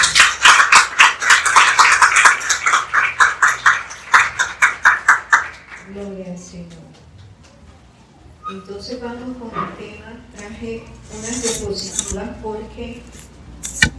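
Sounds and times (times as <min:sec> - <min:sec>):
audience applauding: 0:00.0 - 0:06.0
speech: 0:08.6 - 0:13.2.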